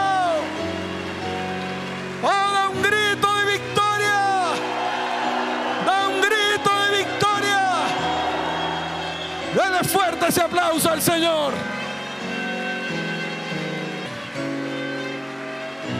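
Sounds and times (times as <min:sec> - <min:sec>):
whoops and shouted cheers: 0:00.0 - 0:02.9, 0:03.9 - 0:12.4, 0:15.1 - 0:15.9
audience applause: 0:00.0 - 0:15.9.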